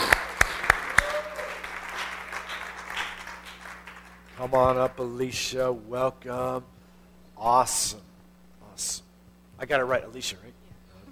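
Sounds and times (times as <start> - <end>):
church congregation applauding to welcome a speaker: 0.0 - 5.0
low hum: 0.0 - 11.0
speech: 4.4 - 6.8, 7.4 - 8.1, 8.8 - 10.6.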